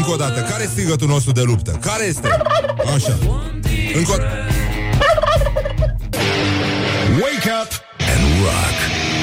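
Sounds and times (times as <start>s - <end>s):
speech: 0.1s - 4.6s, 7.2s - 9.1s
turkey gobbling: 2.2s - 3.2s, 5.0s - 6.0s.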